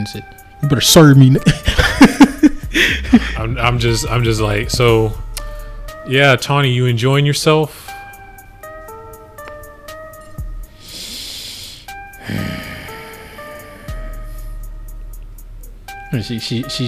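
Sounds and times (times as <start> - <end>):
speech: 0.0 - 1.9, 2.8 - 5.2, 6.0 - 7.9, 16.2 - 16.8
sustained musical tones: 0.0 - 16.8
laughter: 1.4 - 4.0
person breathing deeply in and out: 2.6 - 3.4, 5.3 - 6.0, 7.7 - 8.2, 10.7 - 14.9.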